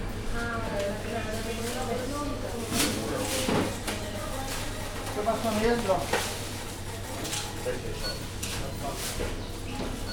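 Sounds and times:
grocery store ambience: 0.0s - 10.1s.

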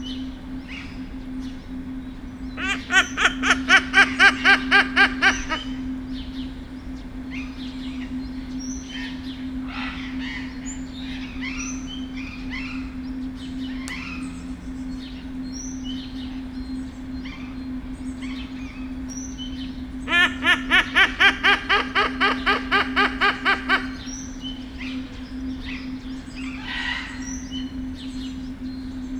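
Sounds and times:
silvery-cheeked hornbill in Debrecen zoo: 2.5s - 5.9s, 19.4s - 27.8s.

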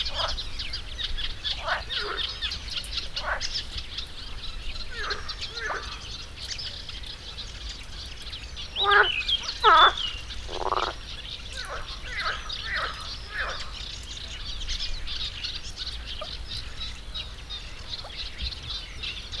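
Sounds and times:
pond frog at the Hortobágy fish ponds: 0.0s - 3.8s, 4.8s - 6.2s, 8.8s - 13.9s
birds at the Hortobágy fish ponds: 0.0s - 19.3s
gentle breeze at the Hortobágy fish ponds: 0.0s - 19.3s.

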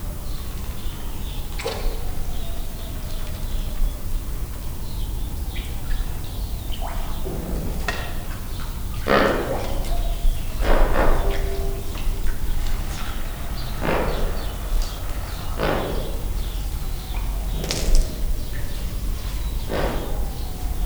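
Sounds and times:
marabou stork with diarrhea in a zoo: 0.0s - 20.8s
lesser flamingo in a zoo: 9.0s - 20.8s.

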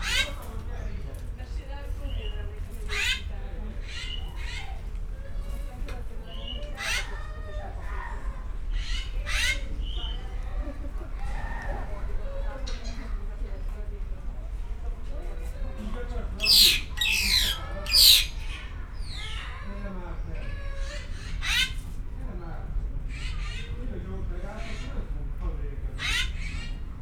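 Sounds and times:
visitors talking: 0.0s - 27.0s
Siberian rubythroat singing: 16.4s - 19.4s.

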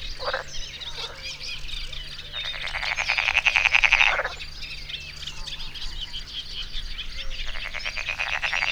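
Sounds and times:
frog croaking with a fast rattling burst: 0.0s - 8.6s.

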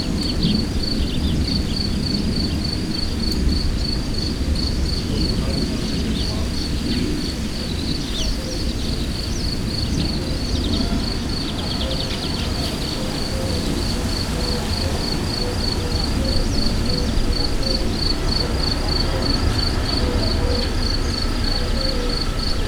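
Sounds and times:
airplane in Hortobágy: 0.0s - 22.6s
cricket chirping in Hortobágy: 0.0s - 22.6s
wind in Hortobágy: 0.0s - 22.6s.

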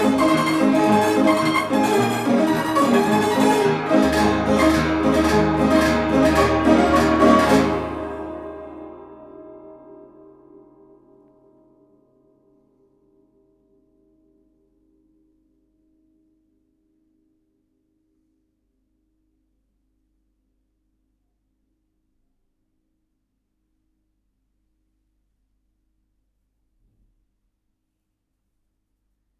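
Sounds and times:
orchestrion playing: 0.0s - 9.9s.

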